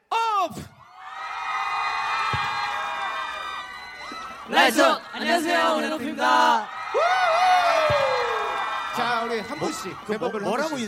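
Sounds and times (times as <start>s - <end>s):
speech: 0.4s - 0.8s, 4.5s - 8.0s, 9.0s - 10.8s
audience cheering: 0.8s - 10.8s.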